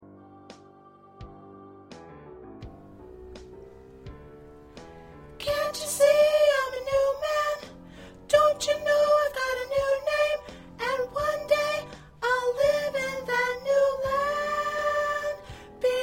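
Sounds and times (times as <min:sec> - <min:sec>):
soprano singing choir parts: 0:00.0 - 0:02.1, 0:05.4 - 0:16.0.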